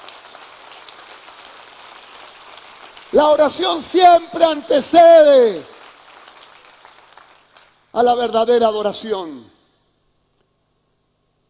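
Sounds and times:
audience clapping in praise: 0.0 - 8.9
speech: 3.1 - 5.7, 8.0 - 9.5.

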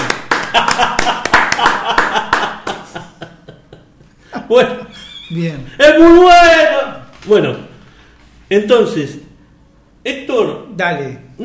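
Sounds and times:
audience applause: 0.0 - 2.9
laughter: 0.4 - 5.3
speech: 4.5 - 7.7, 8.5 - 9.2, 10.0 - 11.4.

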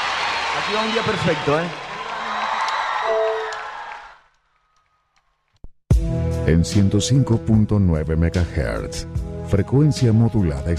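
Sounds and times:
audience applause and cheering: 0.0 - 5.4
speech: 0.6 - 1.8, 6.0 - 10.7.

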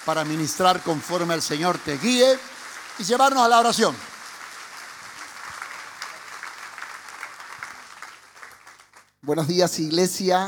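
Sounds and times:
speech: 0.0 - 4.1, 9.3 - 10.4
audience applause in church: 0.0 - 9.2.

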